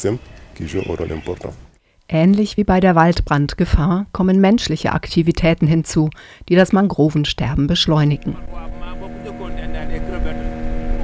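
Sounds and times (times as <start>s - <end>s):
speech: 0.0s - 8.7s
motorboat engine droning: 8.1s - 11.0s.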